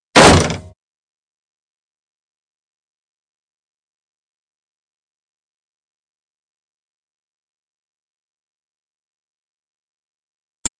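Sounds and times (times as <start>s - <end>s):
fight sounds: 0.2s - 0.7s.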